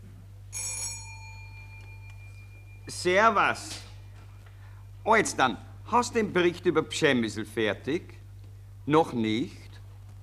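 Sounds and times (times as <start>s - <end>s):
telephone bell ringing: 0.5s - 2.9s
speech: 2.9s - 3.9s, 5.0s - 8.2s, 8.8s - 9.6s.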